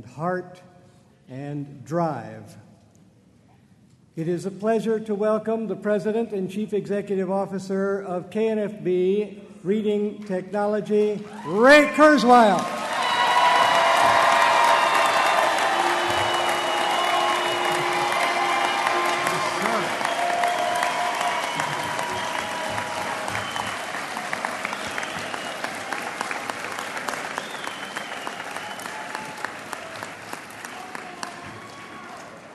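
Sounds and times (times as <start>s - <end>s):
speech: 0.0s - 0.7s, 1.3s - 2.7s, 4.2s - 12.8s
convention audience cheering: 11.3s - 32.5s
National Federation of the Blind convention audience clapping: 11.4s - 32.5s.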